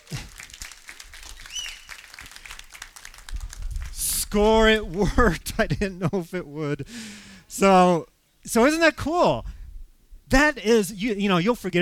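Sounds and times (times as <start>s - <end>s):
audience applause: 0.0s - 5.3s
speech: 4.3s - 9.6s, 10.3s - 11.8s.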